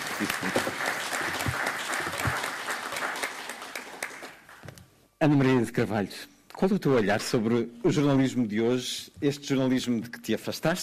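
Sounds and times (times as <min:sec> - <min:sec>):
audience applause: 0:00.0 - 0:04.6
speech: 0:00.2 - 0:01.4, 0:05.2 - 0:10.8.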